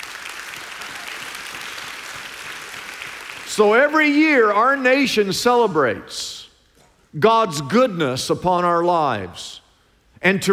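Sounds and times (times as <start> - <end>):
audience applause: 0.0 - 3.5
speech: 3.6 - 6.4, 7.1 - 9.6, 10.2 - 10.5.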